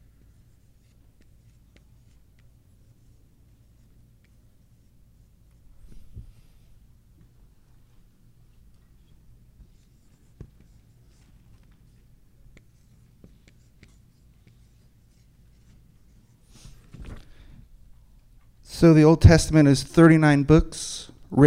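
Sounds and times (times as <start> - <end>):
pen scratching in handwriting: 0.2 - 6.0, 9.6 - 16.7
speech: 18.8 - 21.4.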